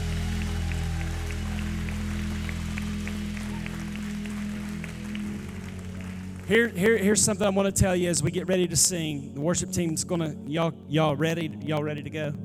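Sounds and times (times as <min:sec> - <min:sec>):
people clapping: 0:00.0 - 0:07.4
speech: 0:06.5 - 0:12.4.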